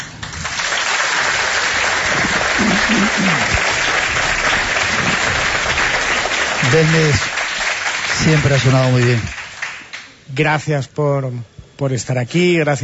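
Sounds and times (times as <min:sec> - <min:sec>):
audience applause: 0:00.0 - 0:10.2
speech: 0:06.7 - 0:07.3, 0:08.2 - 0:09.4, 0:10.3 - 0:12.8.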